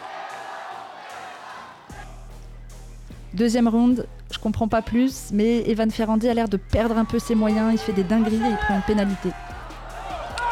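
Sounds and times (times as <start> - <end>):
crowd shouting and cheering: 0.0 - 2.3, 6.8 - 10.5
speech: 3.3 - 9.5.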